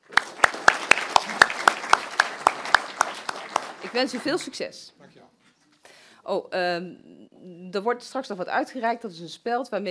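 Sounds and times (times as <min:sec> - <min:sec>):
people clapping: 0:00.0 - 0:04.8
speech: 0:03.9 - 0:05.0, 0:06.3 - 0:09.9.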